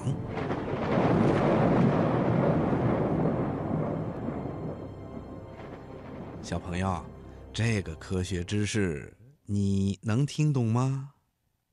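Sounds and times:
thunder rumbling: 0.0 - 8.1
speech: 6.5 - 11.2.

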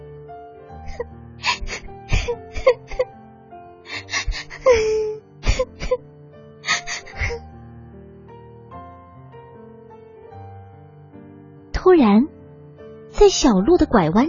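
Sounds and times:
little girl crying in a forest: 0.9 - 3.1, 3.9 - 6.0, 6.6 - 7.4
speech: 1.0 - 1.5, 13.2 - 14.2.

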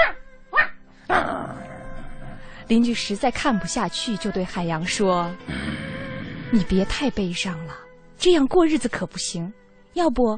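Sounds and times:
dog barking: 0.0 - 0.8
speech: 2.7 - 5.8, 6.5 - 10.3.

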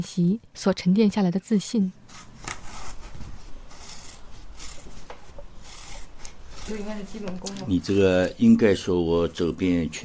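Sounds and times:
speech: 0.0 - 2.3, 6.7 - 10.0
scissors cutting paper: 2.1 - 8.3.

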